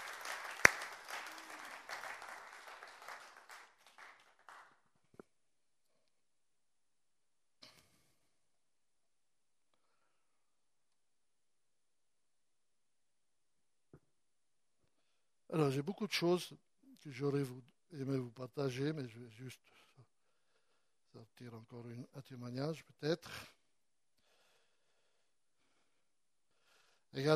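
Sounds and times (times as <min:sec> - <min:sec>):
audience applauding: 0:00.0 - 0:04.9
speech: 0:15.5 - 0:19.8, 0:21.2 - 0:23.6, 0:27.1 - 0:27.3.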